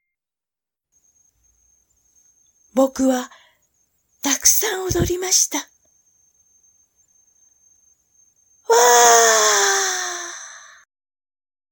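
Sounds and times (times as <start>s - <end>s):
speech: 2.8s - 3.4s, 4.2s - 5.7s
big yawn: 8.7s - 10.8s.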